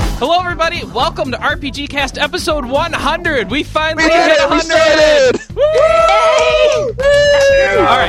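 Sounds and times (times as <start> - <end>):
speech: 0.2 - 8.0
group of people cheering: 4.0 - 8.0.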